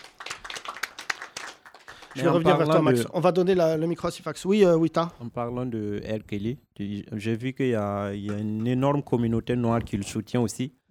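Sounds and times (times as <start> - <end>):
audience clapping: 0.0 - 3.0
speech: 2.2 - 10.8.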